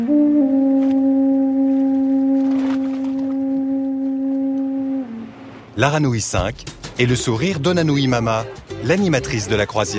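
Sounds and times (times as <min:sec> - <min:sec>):
ship's horn long low blast: 0:00.0 - 0:05.8
speech: 0:05.8 - 0:09.9.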